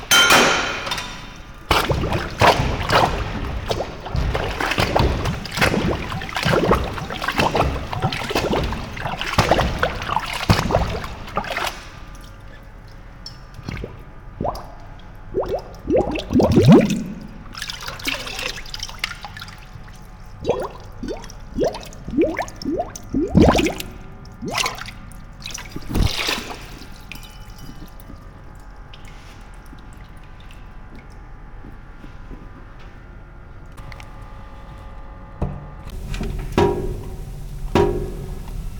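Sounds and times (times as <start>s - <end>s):
dishes being washed in a cafe in Lisbon: 0.0s - 12.7s, 15.4s - 30.1s, 35.9s - 38.7s.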